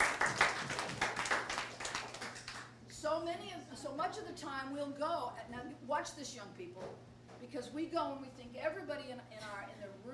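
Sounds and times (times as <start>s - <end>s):
audience clapping: 0.0s - 2.7s
speech: 3.3s - 10.1s.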